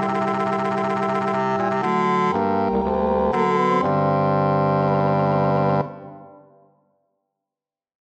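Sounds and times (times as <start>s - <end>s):
bass: 0.0s - 6.0s.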